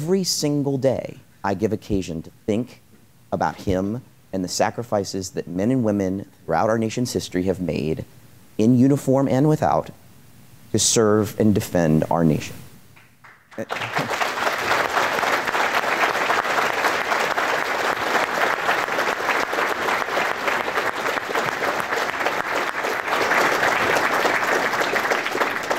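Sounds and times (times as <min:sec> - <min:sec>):
speech: 0:00.0 - 0:10.0, 0:10.7 - 0:12.6, 0:13.6 - 0:14.1
audience applause: 0:13.2 - 0:25.7.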